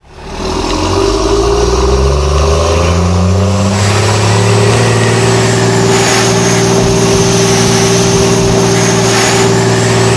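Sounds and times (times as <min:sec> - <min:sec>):
vehicles: 0:00.0 - 0:10.1.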